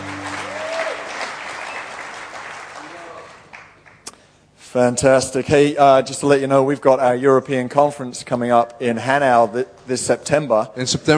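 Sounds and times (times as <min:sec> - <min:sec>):
brief tonal notes: 0:00.0 - 0:00.9
audience applause for the band: 0:00.0 - 0:04.0
speech: 0:04.7 - 0:11.1.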